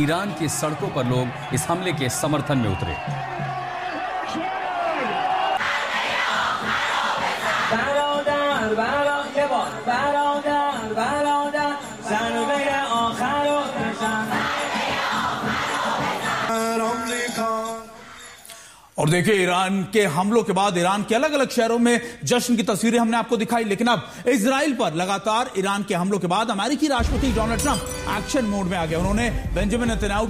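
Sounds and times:
speech: 0:00.0 - 0:03.6, 0:19.0 - 0:30.2
street crowd chanting slogans: 0:03.2 - 0:11.2, 0:11.8 - 0:17.0.

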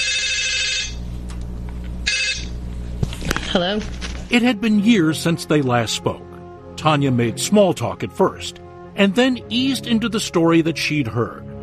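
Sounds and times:
telephone ringing through an earpiece: 0:00.0 - 0:01.1, 0:02.0 - 0:02.6
speech: 0:03.6 - 0:11.4.

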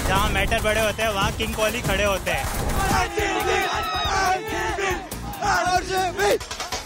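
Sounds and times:
speech: 0:00.1 - 0:06.6
fans cheering and chanting outside Narendra Modi Stadium in Ahmedabad: 0:02.6 - 0:06.7.

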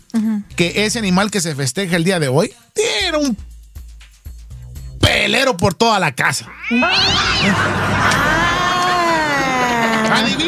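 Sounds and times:
speech: 0:00.1 - 0:03.5, 0:05.2 - 0:08.2, 0:10.1 - 0:10.4
cat meowing loudly: 0:06.4 - 0:07.6
laughter: 0:06.8 - 0:10.4.

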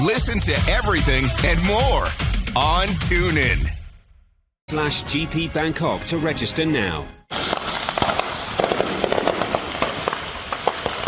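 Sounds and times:
speech: 0:00.1 - 0:03.8, 0:04.7 - 0:07.5
fireworks stand near Tulsa, Oklahoma exploding: 0:07.3 - 0:11.0.

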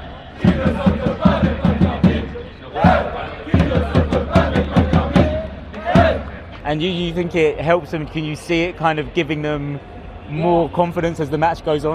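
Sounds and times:
crowd cheering and chanting at an esports event: 0:00.0 - 0:09.4
speech: 0:00.4 - 0:01.5, 0:06.7 - 0:11.9
rhythmic claps or stomps: 0:00.4 - 0:06.4.

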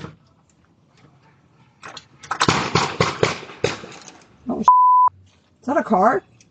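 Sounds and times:
gunshots on a doorbell camera recording: 0:02.3 - 0:04.0
speech: 0:05.7 - 0:06.3.

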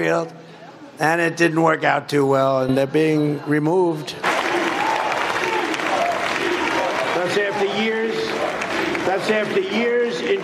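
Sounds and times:
speech: 0:00.0 - 0:00.4, 0:01.0 - 0:04.3, 0:09.2 - 0:10.4
crowd chanting: 0:04.2 - 0:10.4.

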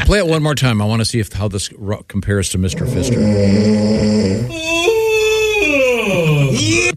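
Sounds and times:
speech: 0:00.1 - 0:05.0, 0:06.1 - 0:06.9
person yawning: 0:02.7 - 0:06.9.

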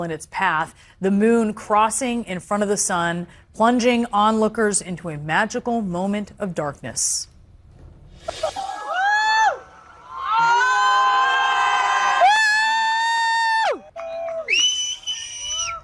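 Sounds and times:
speech: 0:00.0 - 0:07.3
crowd in Spain cheering and screaming during a total solar eclipse: 0:08.4 - 0:15.8
whistles: 0:14.4 - 0:15.8.

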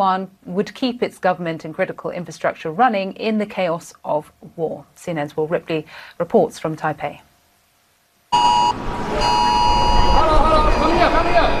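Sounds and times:
speech: 0:00.0 - 0:07.3
air raid sirens: 0:08.4 - 0:11.5.

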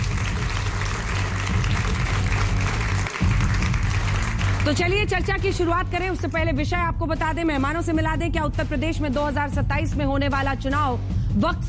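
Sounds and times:
audience applause: 0:00.0 - 0:05.0
speech: 0:04.7 - 0:11.6.

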